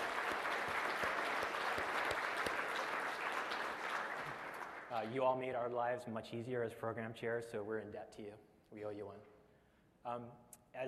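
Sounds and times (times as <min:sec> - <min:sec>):
audience applause for the program committee: 0:00.0 - 0:05.2
speech: 0:04.9 - 0:09.4, 0:10.0 - 0:10.8.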